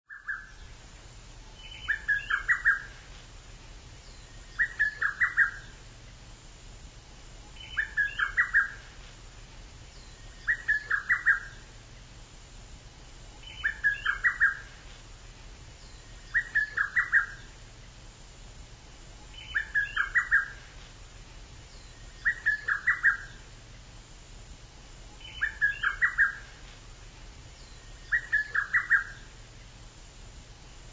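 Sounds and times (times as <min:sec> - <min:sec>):
background hiss and hum: 0:00.0 - 0:30.9
Japanese bush warbler singing: 0:00.1 - 0:06.2, 0:07.4 - 0:09.0, 0:09.8 - 0:12.2, 0:13.0 - 0:18.0, 0:19.2 - 0:23.7, 0:25.1 - 0:29.8.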